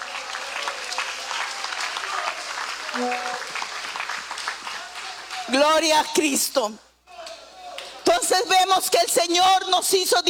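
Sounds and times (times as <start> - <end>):
audience clapping hands: 0.0 - 5.5
speech: 3.0 - 3.5, 5.5 - 6.9, 8.3 - 10.2.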